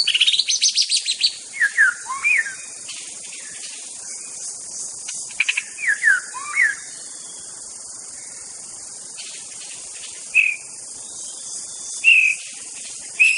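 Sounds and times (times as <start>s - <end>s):
White-rumped shama song of fluty whistles in a forest: 0.0s - 2.8s, 5.4s - 7.4s, 10.3s - 13.3s.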